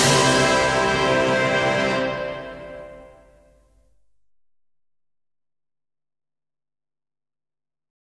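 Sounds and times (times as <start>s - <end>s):
military march: 0.0s - 3.2s.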